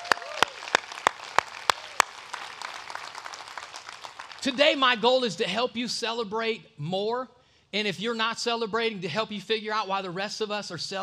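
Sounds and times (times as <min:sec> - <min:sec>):
church congregation clapping in praise: 0:00.0 - 0:05.0
speech: 0:04.4 - 0:11.0.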